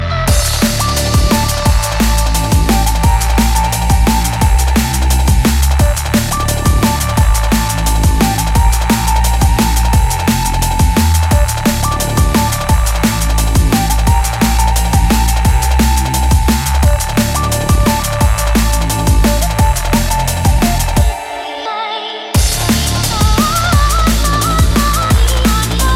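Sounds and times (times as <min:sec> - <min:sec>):
drum and bass music: 0:00.0 - 0:25.9.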